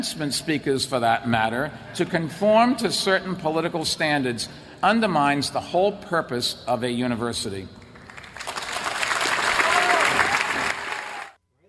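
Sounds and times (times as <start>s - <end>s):
speech: 0.0s - 7.8s
audience applause: 8.1s - 11.4s.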